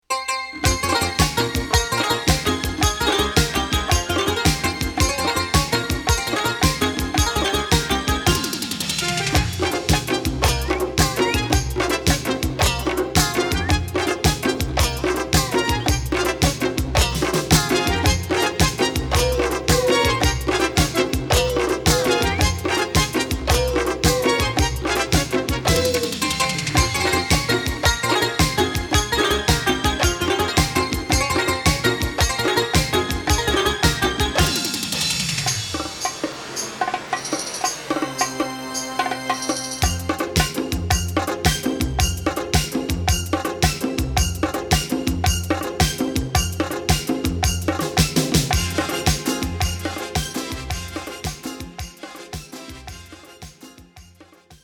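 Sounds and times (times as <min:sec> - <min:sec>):
instrumental music: 0:00.0 - 0:54.6.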